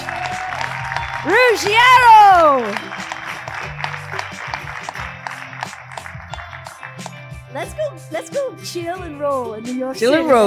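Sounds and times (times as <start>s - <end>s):
audience applause: 0.0s - 7.4s
speech: 1.2s - 2.9s, 8.2s - 10.4s.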